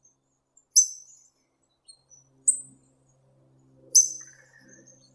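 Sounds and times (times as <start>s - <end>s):
hawfinch Coccothraustes coccothraustes: 2.1s - 5.1s.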